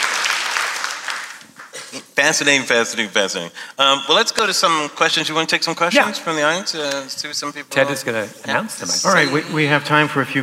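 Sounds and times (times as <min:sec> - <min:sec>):
audience applause at a live talk: 0:00.0 - 0:01.8
speech: 0:02.2 - 0:10.4.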